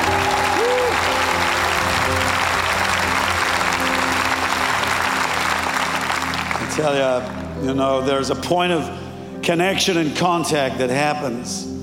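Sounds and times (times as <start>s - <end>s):
audience applauding: 0.0s - 7.6s
speech: 6.8s - 11.7s.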